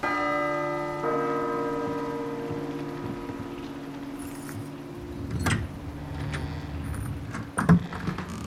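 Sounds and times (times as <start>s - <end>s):
small bell ringing: 0.0s - 4.8s
soft knocks and clatters: 1.1s - 8.3s.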